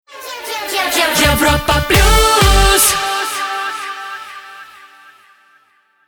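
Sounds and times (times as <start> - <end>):
jingle: 1.2 - 3.3.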